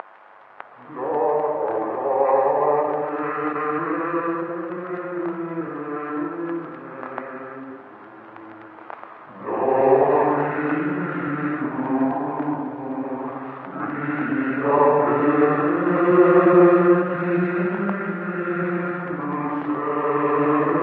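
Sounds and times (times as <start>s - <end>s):
imp chanting: 0.7s - 20.8s.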